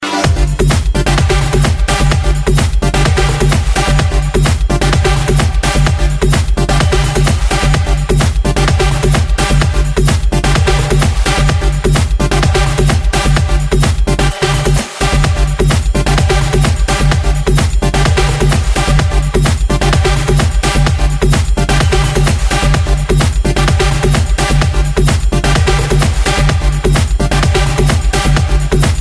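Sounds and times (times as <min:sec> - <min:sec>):
house music ringtone: 0:00.0 - 0:29.0.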